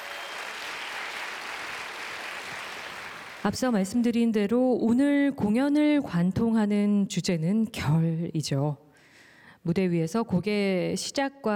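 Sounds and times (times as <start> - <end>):
audience applause: 0.0 - 3.5
speech: 3.4 - 8.8, 9.6 - 11.5.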